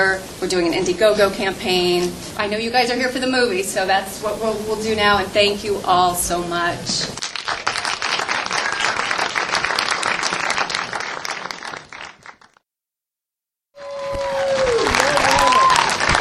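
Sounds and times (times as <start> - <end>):
speech: 0.0 - 7.6
audience applause after film screening: 7.2 - 12.6, 13.8 - 16.1.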